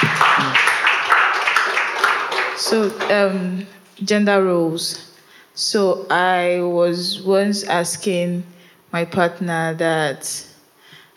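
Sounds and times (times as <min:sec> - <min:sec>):
crowd applauding: 0:00.0 - 0:03.4
voice murmur: 0:00.1 - 0:00.8
speech: 0:02.7 - 0:10.5.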